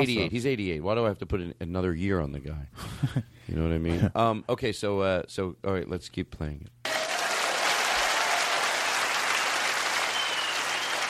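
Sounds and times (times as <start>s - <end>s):
speech: 0.0s - 7.0s
audience applause: 6.8s - 11.0s.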